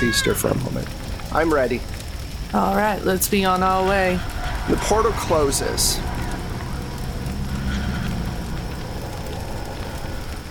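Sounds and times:
speech: 0.0s - 6.2s
raging fire roaring with crackling and low rumbling: 0.0s - 10.4s.

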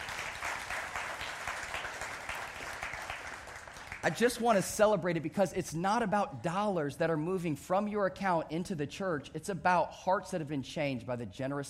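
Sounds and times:
audience clapping: 0.0s - 4.6s
speech: 4.0s - 11.6s.

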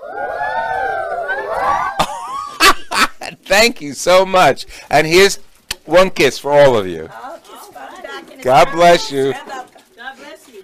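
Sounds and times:
crowd cheering woo: 0.0s - 2.6s
laughter: 0.0s - 3.5s
speech: 3.5s - 7.3s, 8.4s - 9.5s.

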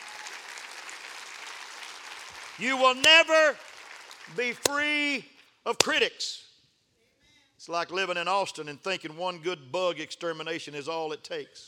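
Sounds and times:
audience clapping hands: 0.0s - 5.2s
speech: 2.6s - 3.7s, 4.3s - 6.5s, 7.6s - 11.6s.

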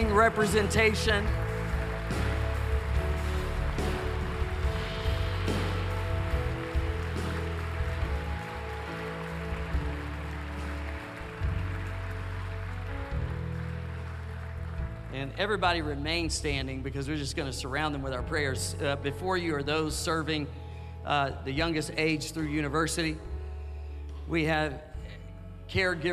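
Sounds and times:
audience clapping: 0.0s - 16.8s
speech: 0.2s - 1.5s, 15.4s - 23.3s, 24.3s - 24.9s, 25.7s - 26.1s.

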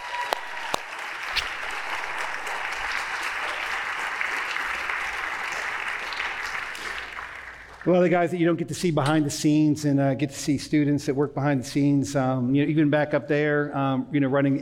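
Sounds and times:
audience applause: 0.0s - 7.9s
speech: 7.8s - 14.6s.

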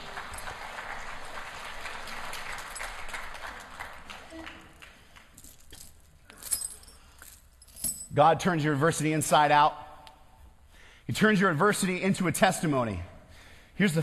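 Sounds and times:
audience applause for intern: 0.0s - 5.3s
speech: 8.2s - 9.8s, 11.1s - 13.1s, 13.8s - 14.0s.

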